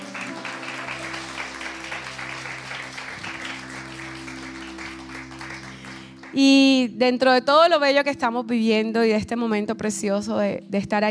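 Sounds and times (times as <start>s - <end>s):
audience applause: 0.0s - 6.4s
speech: 6.3s - 11.0s.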